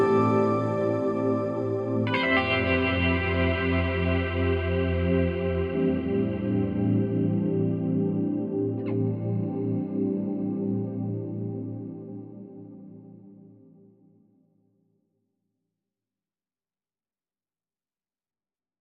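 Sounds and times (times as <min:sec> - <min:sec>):
music without drums: 0:00.0 - 0:13.1.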